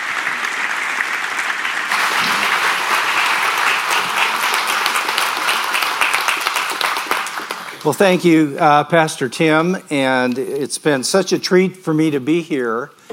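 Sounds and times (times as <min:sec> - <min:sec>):
church audience applauding to welcome a guest speaker: 0:00.0 - 0:08.4
speech: 0:07.8 - 0:13.0.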